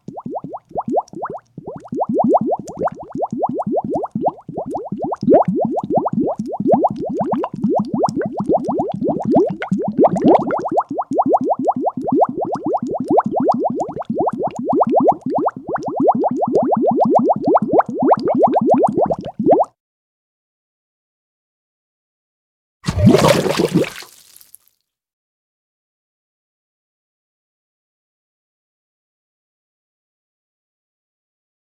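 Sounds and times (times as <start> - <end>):
bubbles popping: 0.0 - 19.7, 22.9 - 24.5.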